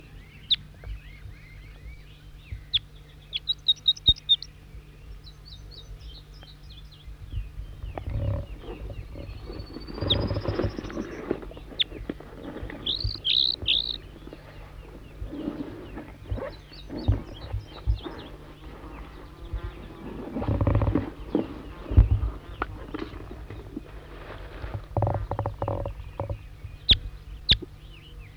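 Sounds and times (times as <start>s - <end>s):
wild bird song phrases: 0.0s - 28.3s
heavy thumping: 7.9s - 26.4s
rising bird whistle: 12.7s - 18.4s.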